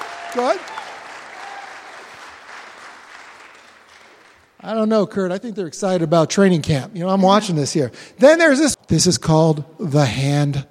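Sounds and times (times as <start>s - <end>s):
audience clapping: 0.0s - 4.6s
speech: 0.4s - 0.8s, 4.6s - 10.7s.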